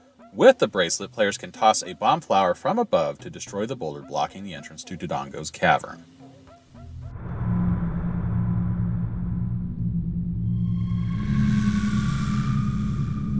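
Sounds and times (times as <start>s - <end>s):
speech: 0.3s - 6.2s
creepy dungeon music with deep bass drone: 7.0s - 13.3s.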